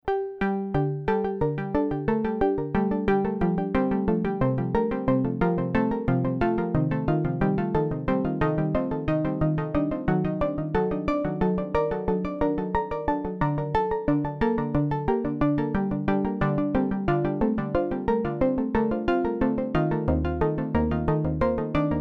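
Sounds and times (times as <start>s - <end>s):
iSEM clockwise arpeggio with delay effect: 0.1s - 21.9s.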